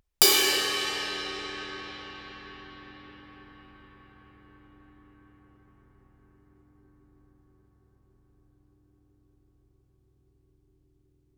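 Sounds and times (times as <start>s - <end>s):
suspended cymbal crash struck with stick fortissimo: 0.2s - 4.3s.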